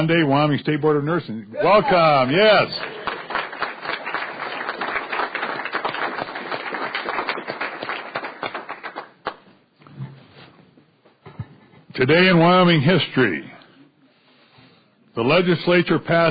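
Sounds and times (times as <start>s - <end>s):
speech: 0.0s - 3.0s, 12.0s - 13.5s, 15.2s - 16.3s
audience applause: 1.6s - 9.5s.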